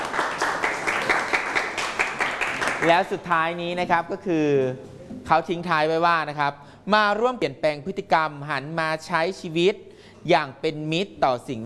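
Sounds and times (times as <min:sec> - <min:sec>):
classroom audience clapping for a classmate: 0:00.0 - 0:03.3
speech: 0:02.8 - 0:11.6.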